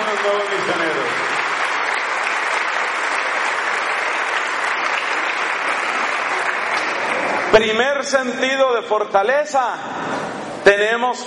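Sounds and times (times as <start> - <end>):
audience applause: 0.0 - 7.6
speech: 0.2 - 1.0, 7.6 - 11.2.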